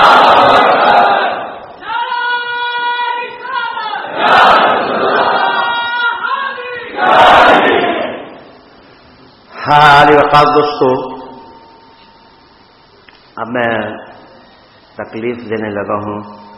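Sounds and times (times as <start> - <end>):
crowd shouting Allahu Akbar at a religious gathering: 0.0 - 8.4
speech: 9.7 - 11.1, 13.5 - 14.0, 15.0 - 16.5.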